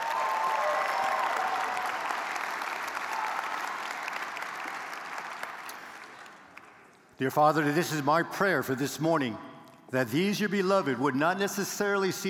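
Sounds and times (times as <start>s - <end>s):
audience applause welcoming prospective university students and loved ones: 0.0s - 6.8s
speech: 7.2s - 12.2s.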